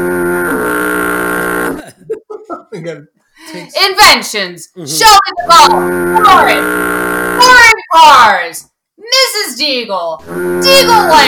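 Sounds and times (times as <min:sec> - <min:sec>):
harsh game show buzzer: 0:00.0 - 0:01.8, 0:05.0 - 0:08.3, 0:10.2 - 0:11.2
laughter: 0:01.8 - 0:03.1
speech: 0:02.8 - 0:11.2.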